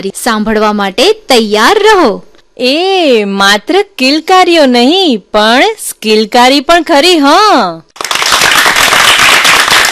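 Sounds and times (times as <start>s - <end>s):
speech: 0.0s - 7.9s
applause: 8.0s - 9.9s.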